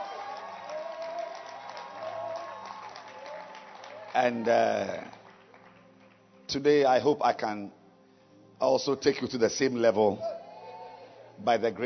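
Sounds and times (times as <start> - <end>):
audience clapping hands: 0.0 - 6.7
speech: 4.2 - 5.2, 6.5 - 7.8, 8.6 - 10.3, 11.4 - 11.8.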